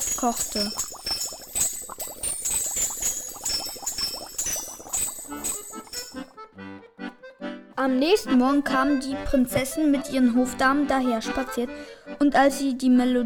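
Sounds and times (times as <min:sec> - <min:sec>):
small bells on a pot jingling: 0:00.0 - 0:06.3
speech: 0:00.2 - 0:01.0, 0:07.8 - 0:13.2.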